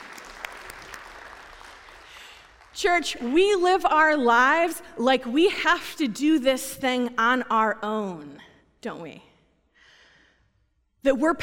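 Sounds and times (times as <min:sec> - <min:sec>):
audience clapping: 0:00.0 - 0:03.4
speech: 0:02.8 - 0:09.3, 0:11.0 - 0:11.4.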